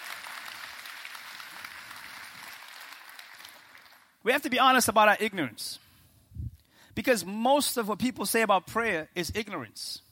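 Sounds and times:
audience in balcony clapping: 0:00.0 - 0:04.2
speech: 0:04.2 - 0:05.8, 0:07.0 - 0:10.0.

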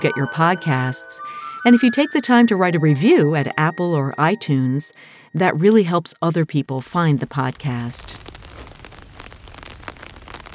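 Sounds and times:
speech: 0:00.0 - 0:08.3
rain falling: 0:07.9 - 0:10.5.

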